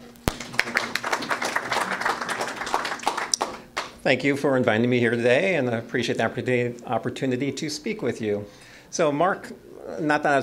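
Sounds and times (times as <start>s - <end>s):
round of applause: 0.3s - 4.0s
speech: 4.0s - 10.4s.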